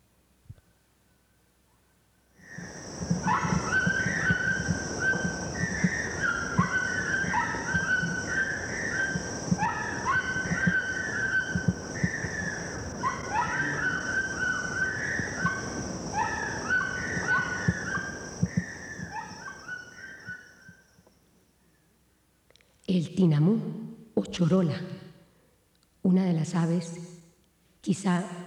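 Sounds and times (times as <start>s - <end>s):
toucan calls: 2.5s - 20.8s
speech: 23.0s - 23.7s, 24.3s - 25.0s, 26.4s - 27.0s, 27.8s - 28.4s.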